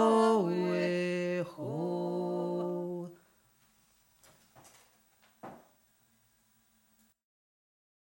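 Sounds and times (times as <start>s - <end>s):
lower voice singing: 0.0s - 3.2s.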